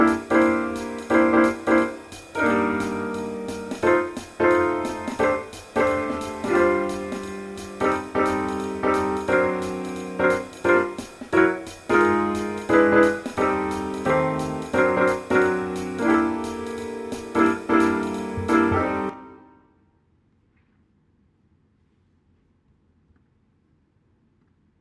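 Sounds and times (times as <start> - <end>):
jazz music: 0.0 - 19.5.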